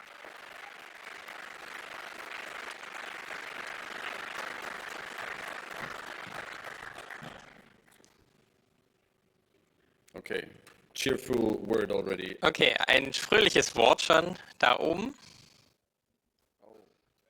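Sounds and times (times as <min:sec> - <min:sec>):
audience applause: 0:00.0 - 0:08.0, 0:12.9 - 0:15.1
speech: 0:10.3 - 0:15.3.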